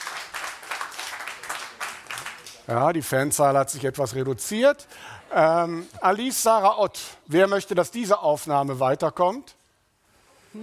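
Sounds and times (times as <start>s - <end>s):
audience applause: 0.0s - 2.7s
speech: 2.7s - 9.6s.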